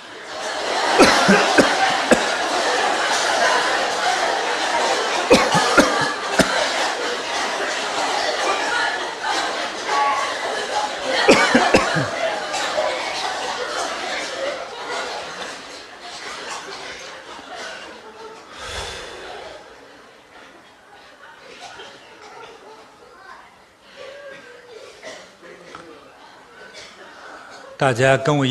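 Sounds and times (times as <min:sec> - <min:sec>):
crowd coughing: 0:00.0 - 0:15.6, 0:16.4 - 0:19.8, 0:23.9 - 0:27.8
murmur of voices: 0:00.0 - 0:28.5
chuckles: 0:01.0 - 0:02.4, 0:05.3 - 0:06.7, 0:11.1 - 0:12.3
speech: 0:01.3 - 0:01.6, 0:27.8 - 0:28.5.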